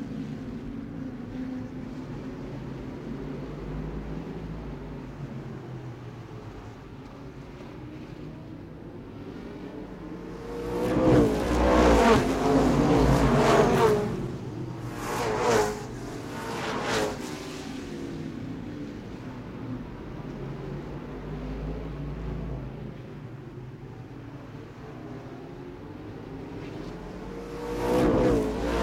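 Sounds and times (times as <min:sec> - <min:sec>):
motorbikes passing by: 0:10.2 - 0:18.5, 0:26.0 - 0:28.8.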